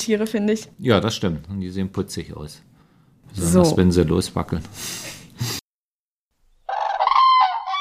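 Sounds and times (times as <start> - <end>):
speech: 0.0 - 2.7, 3.3 - 5.6
crane calling: 6.7 - 7.8.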